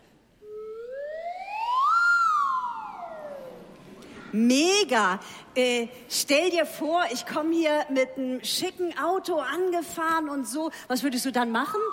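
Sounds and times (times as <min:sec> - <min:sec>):
lotus flute slide whistle glide: 0:00.4 - 0:03.6
speech: 0:04.3 - 0:11.9.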